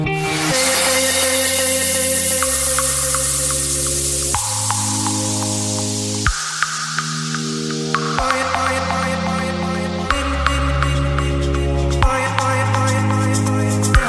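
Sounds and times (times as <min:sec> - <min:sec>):
ringtone mix: 0:00.1 - 0:14.0.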